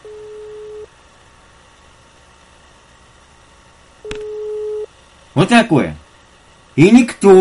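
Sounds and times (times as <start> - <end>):
telephone ringback tone: 0.0 - 0.9, 4.1 - 4.9
speech: 5.4 - 6.0, 6.8 - 7.3.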